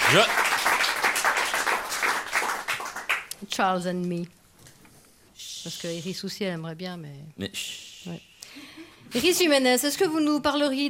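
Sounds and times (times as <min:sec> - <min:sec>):
audience applause: 0:00.0 - 0:03.3
speech: 0:00.1 - 0:00.4, 0:03.5 - 0:04.4, 0:05.6 - 0:10.8.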